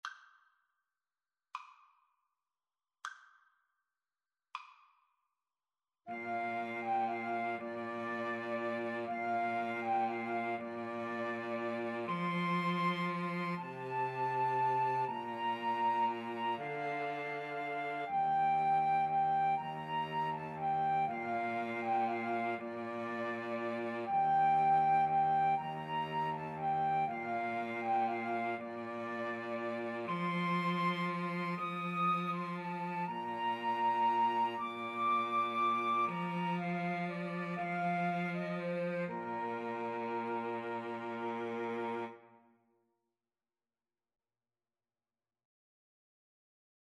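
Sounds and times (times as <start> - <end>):
cello: 6.1 - 42.4
flute: 6.1 - 42.4
violin: 6.1 - 42.4.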